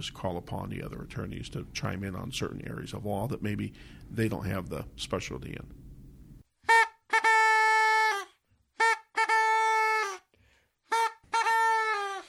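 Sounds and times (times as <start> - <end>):
speech: 0.0 - 5.8
kazoo being blown: 6.6 - 12.2.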